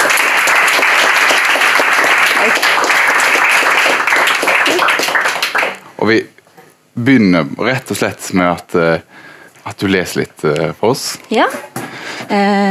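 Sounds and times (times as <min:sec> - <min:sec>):
audience applause: 0:00.0 - 0:05.8
speech: 0:06.0 - 0:06.4, 0:07.0 - 0:12.6.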